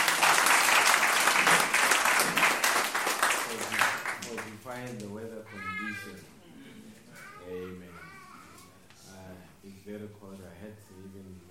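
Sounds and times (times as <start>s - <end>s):
crowd clapping: 0.0s - 5.0s
speech: 4.8s - 6.4s, 9.9s - 11.4s.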